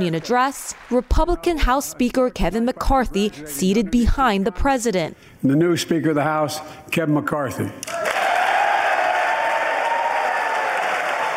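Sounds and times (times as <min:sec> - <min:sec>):
applause from a large crowd in a House chamber: 0:00.0 - 0:01.1, 0:07.9 - 0:11.3
speech: 0:00.0 - 0:08.1.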